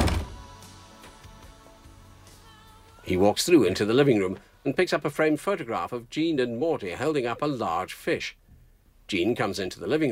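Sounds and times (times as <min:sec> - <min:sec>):
door being shut: 0:00.0 - 0:00.5
speech: 0:03.1 - 0:08.4, 0:09.1 - 0:10.0.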